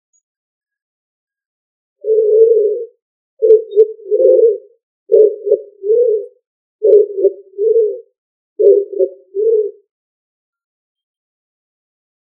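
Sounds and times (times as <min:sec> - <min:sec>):
pigeon cooing: 0:02.0 - 0:09.9.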